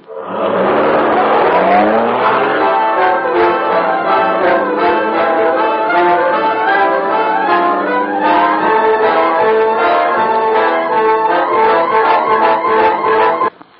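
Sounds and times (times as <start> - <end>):
car engine starting and driving off: 0.1 - 13.4.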